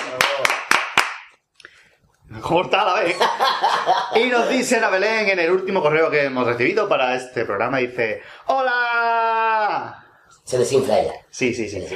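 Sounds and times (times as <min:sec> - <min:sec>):
clapping: 0:00.0 - 0:01.4
speech: 0:02.3 - 0:08.8, 0:10.5 - 0:11.9
laughter: 0:03.0 - 0:04.8.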